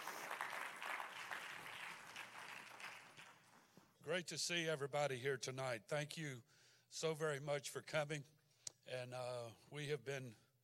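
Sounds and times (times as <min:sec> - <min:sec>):
audience clapping hands: 0:00.0 - 0:03.8
speech: 0:04.0 - 0:10.4.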